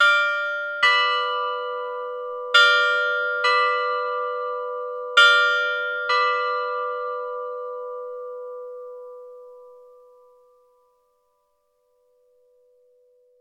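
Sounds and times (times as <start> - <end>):
bells ringing: 0.0 - 8.0.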